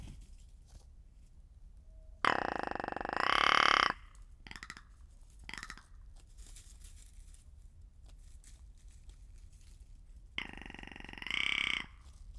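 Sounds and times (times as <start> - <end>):
rock ptarmigan croaking call: 2.2 - 4.8, 5.5 - 5.9, 10.4 - 12.0.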